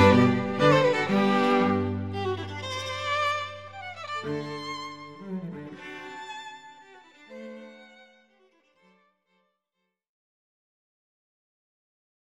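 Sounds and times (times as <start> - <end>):
string quartet playing in G: 0.0 - 8.1.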